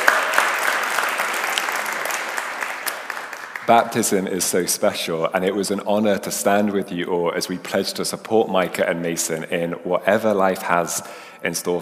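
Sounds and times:
audience applause: 0.0s - 4.2s
speech: 3.7s - 11.7s.

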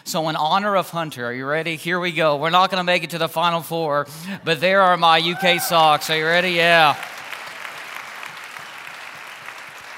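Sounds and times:
speech: 0.1s - 7.1s
crowd applause: 5.3s - 9.9s.

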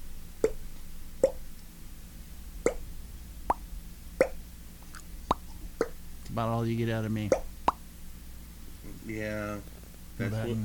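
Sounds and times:
faint steady hum: 0.0s - 10.6s
voice imitating a water drop with mouth plops: 4.2s - 6.0s
speech: 6.4s - 7.5s, 9.1s - 10.6s.

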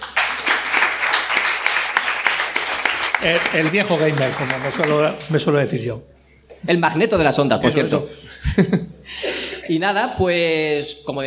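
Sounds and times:
audience applause: 0.0s - 5.5s
speech: 3.2s - 11.2s
laughter: 8.0s - 9.6s.

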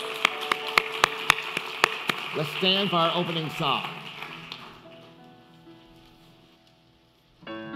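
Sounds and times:
audience clapping in unison: 0.0s - 5.1s
speech: 2.3s - 4.0s.

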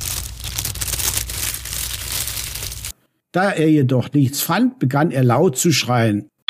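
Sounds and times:
book pages being flipped back and forth: 0.0s - 3.0s
speech: 3.4s - 6.3s.

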